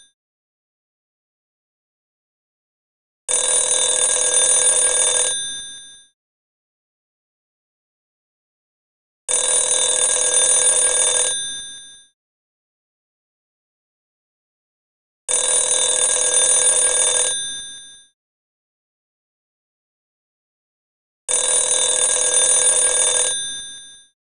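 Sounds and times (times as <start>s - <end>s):
telephone ringing: 3.3s - 6.0s, 9.3s - 12.0s, 15.3s - 18.0s, 21.3s - 24.2s.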